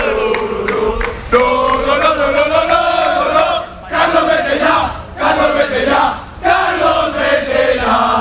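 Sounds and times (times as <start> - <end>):
sharp claps: 0.0 - 2.8
football crowd chanting against the coach: 0.0 - 8.1.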